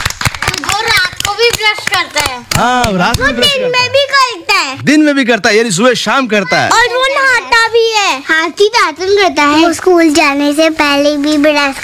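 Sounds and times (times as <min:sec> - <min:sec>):
loud hand clapping: 0:00.0 - 0:03.4
child speaking: 0:00.6 - 0:02.5, 0:03.2 - 0:04.8, 0:06.3 - 0:11.8
speech: 0:01.4 - 0:11.8.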